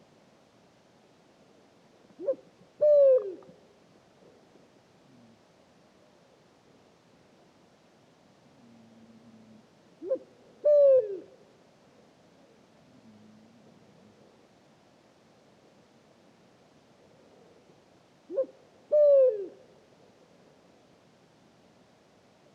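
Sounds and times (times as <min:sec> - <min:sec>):
Pharaoh eagle-owl hooting: 0:02.2 - 0:03.4, 0:10.0 - 0:11.3, 0:18.3 - 0:19.6.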